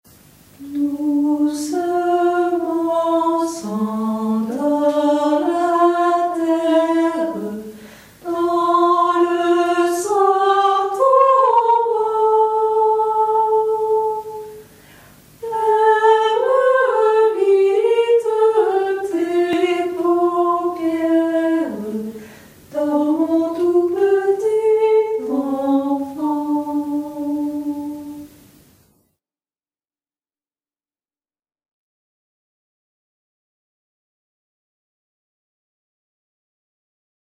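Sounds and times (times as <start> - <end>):
soprano singing a lullaby: 0.6 - 14.6, 15.4 - 28.4.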